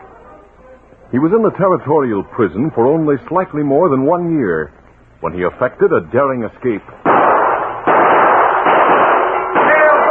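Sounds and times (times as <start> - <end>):
speech: 1.1 - 7.1
gunfire during a jailbreak: 7.0 - 10.0.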